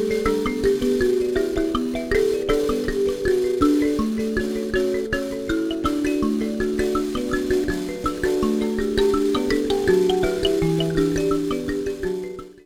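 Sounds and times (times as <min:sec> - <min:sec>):
mbira: 0:00.0 - 0:12.6.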